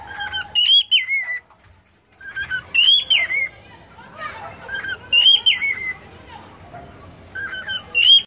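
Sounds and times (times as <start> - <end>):
cockatiel singing: 0.0 - 1.4, 2.2 - 3.5, 4.4 - 6.0, 7.3 - 8.2.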